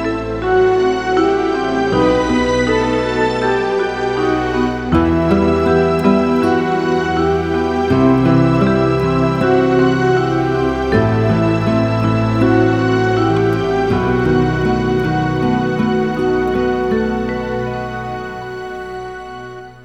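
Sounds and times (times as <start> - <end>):
soft background music: 0.0 - 19.8.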